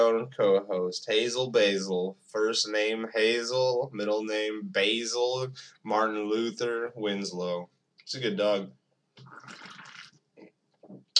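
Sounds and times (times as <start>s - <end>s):
speech: 0.0s - 9.7s
sipping a drink: 9.2s - 10.1s.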